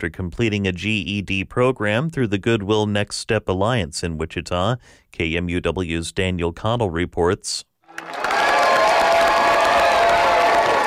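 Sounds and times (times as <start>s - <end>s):
speech: 0.0s - 8.4s
friends and family cheering at a graduation: 7.9s - 10.8s.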